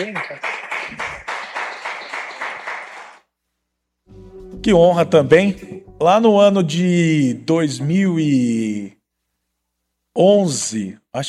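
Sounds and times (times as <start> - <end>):
speech: 0.0 - 1.3, 4.6 - 9.0, 10.2 - 11.2
applause: 0.0 - 3.3.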